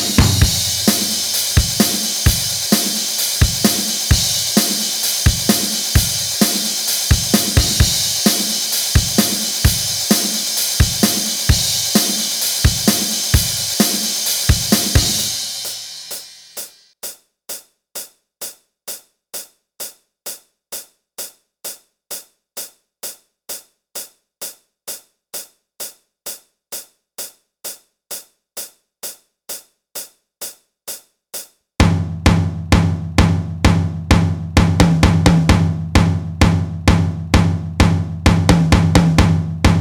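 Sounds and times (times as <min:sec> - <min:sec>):
drums jamming: 0:00.0 - 0:16.7, 0:31.8 - 0:39.7.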